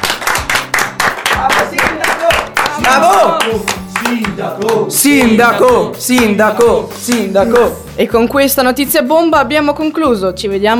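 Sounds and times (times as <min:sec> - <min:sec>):
loud steady applause with rhythmic bursts of clapping: 0:00.0 - 0:05.3
speech: 0:02.8 - 0:10.7.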